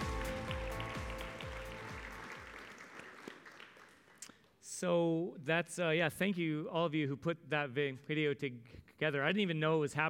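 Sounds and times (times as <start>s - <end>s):
audience applause: 0.0s - 4.2s
speech: 4.8s - 10.0s.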